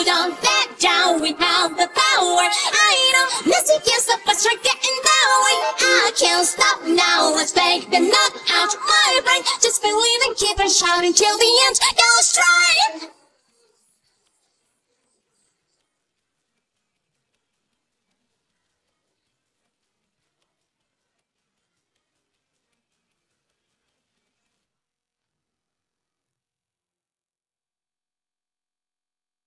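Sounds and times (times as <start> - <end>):
English vocals: 0.0 - 13.8.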